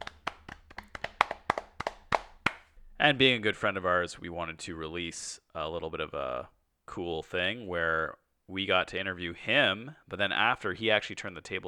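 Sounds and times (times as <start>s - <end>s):
small group clapping: 0.0s - 2.7s
speech: 3.0s - 11.6s.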